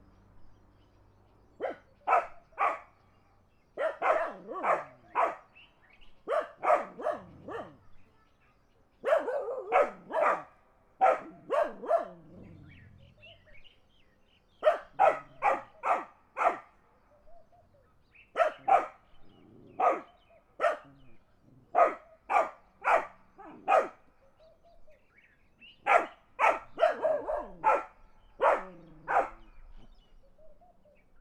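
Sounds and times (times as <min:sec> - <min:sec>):
dogs barking in the country: 0:01.6 - 0:03.0, 0:03.8 - 0:05.6, 0:06.2 - 0:07.8, 0:09.0 - 0:12.8, 0:14.6 - 0:16.8, 0:18.3 - 0:24.4, 0:25.8 - 0:29.6.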